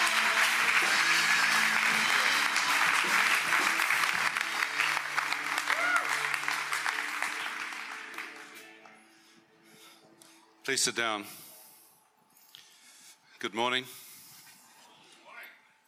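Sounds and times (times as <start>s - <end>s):
church congregation applauding to welcome a speaker: 0.0s - 8.8s
speech: 10.7s - 11.4s, 13.4s - 14.0s.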